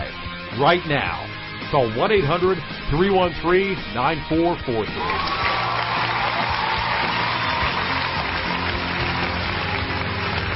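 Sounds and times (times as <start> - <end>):
speech: 0.6 - 5.4
audience applause: 5.0 - 10.5.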